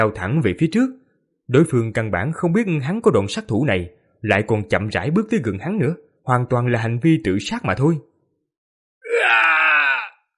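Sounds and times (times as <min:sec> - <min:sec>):
speech: 0:00.0 - 0:08.1
man screaming in agonized pain: 0:09.0 - 0:10.3.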